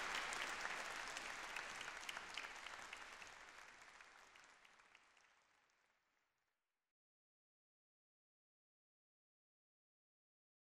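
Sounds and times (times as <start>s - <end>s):
applause: 0.0s - 6.4s.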